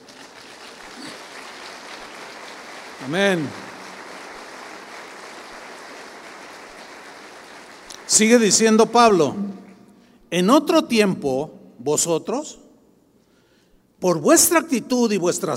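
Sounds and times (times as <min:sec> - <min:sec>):
audience applause: 0:00.0 - 0:08.6
speech: 0:03.0 - 0:03.6, 0:08.1 - 0:09.6, 0:10.3 - 0:12.6, 0:14.0 - 0:15.5.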